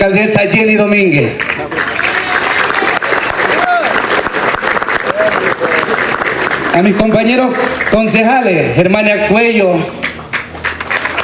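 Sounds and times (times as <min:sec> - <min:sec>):
speech: 0:00.0 - 0:01.9, 0:06.8 - 0:10.0
applause: 0:01.2 - 0:08.5, 0:09.8 - 0:11.2.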